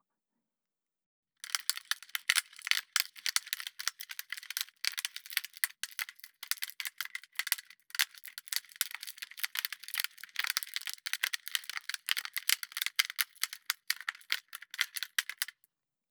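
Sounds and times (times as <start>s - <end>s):
product package crinkling and rattling as it is rubbed: 1.4s - 15.6s.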